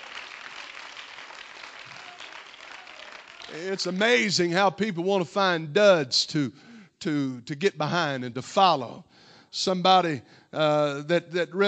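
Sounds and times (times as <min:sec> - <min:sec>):
audience clapping hands: 0:00.0 - 0:04.4
speech: 0:03.5 - 0:11.6.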